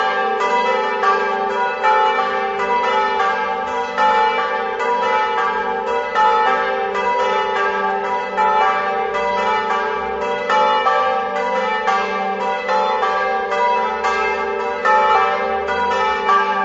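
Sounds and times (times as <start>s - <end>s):
bells: 0.0s - 16.6s.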